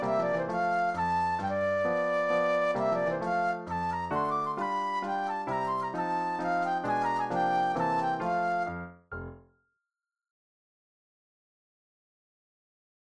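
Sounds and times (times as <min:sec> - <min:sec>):
classical mazurka flute solo: 0:00.0 - 0:09.0.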